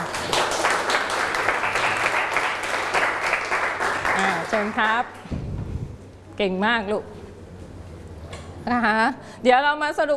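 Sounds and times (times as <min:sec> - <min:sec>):
classroom full of people clapping for two students: 0:00.0 - 0:05.2
speech: 0:04.6 - 0:05.4, 0:06.4 - 0:07.2, 0:08.6 - 0:10.1.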